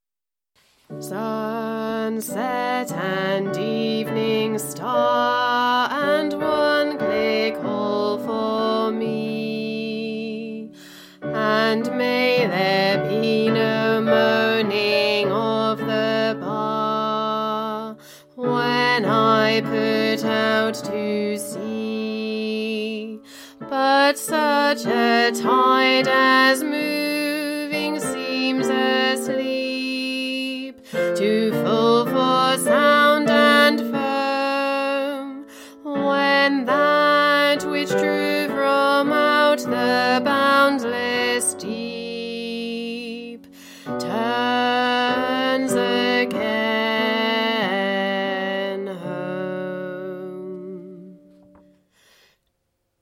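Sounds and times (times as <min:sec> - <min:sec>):
tenor singing: 0:01.0 - 0:51.2.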